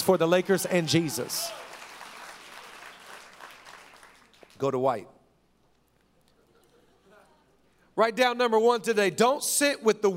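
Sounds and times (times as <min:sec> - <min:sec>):
speech: 0:00.1 - 0:01.6, 0:04.6 - 0:05.2, 0:08.0 - 0:10.1
weak audience applause: 0:00.7 - 0:04.6.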